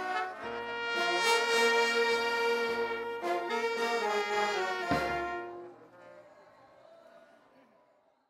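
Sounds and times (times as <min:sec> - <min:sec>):
procession band playing a phrase: 0:00.0 - 0:05.7.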